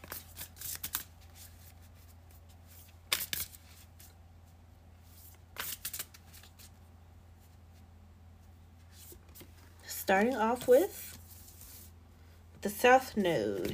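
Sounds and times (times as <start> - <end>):
oracle moon cards being shuffled: 0.0 - 4.2, 5.1 - 6.7, 8.9 - 11.9
speech: 10.1 - 11.0, 12.6 - 13.7.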